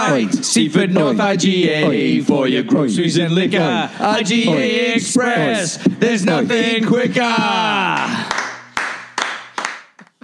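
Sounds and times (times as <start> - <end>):
speech: 0.1 - 8.4
applause: 8.0 - 10.2.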